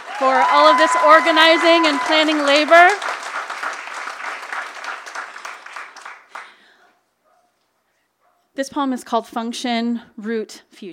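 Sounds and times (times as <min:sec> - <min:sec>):
audience applause: 0:00.0 - 0:06.6
speech: 0:00.2 - 0:03.2, 0:08.6 - 0:10.9.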